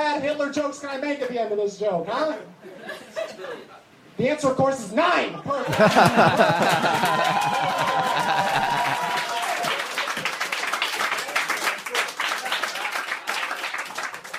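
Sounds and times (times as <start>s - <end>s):
speech: 0.2s - 9.1s
laughter: 2.7s - 3.8s, 5.4s - 9.8s
audience applause: 5.7s - 14.3s.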